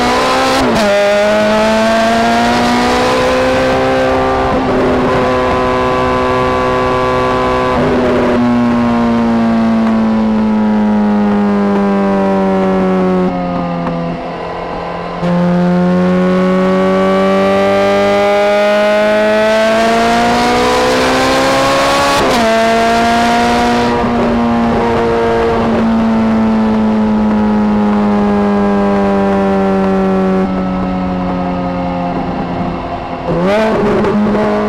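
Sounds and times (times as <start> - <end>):
Ferrari F430 engine: 0.0 - 34.6.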